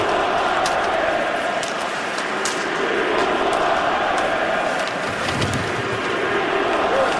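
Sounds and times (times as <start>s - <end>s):
hockey crowd chanting: 0.0s - 7.1s.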